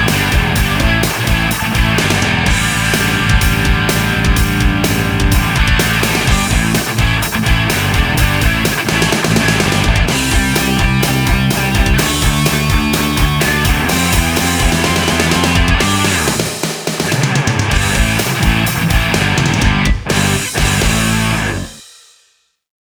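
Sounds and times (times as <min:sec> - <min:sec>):
rock music from a music box: 0:00.0 - 0:22.1.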